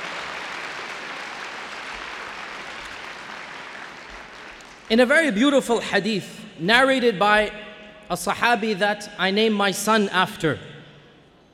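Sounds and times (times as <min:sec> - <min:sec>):
audience applause: 0:00.0 - 0:04.9
speech: 0:04.9 - 0:10.7.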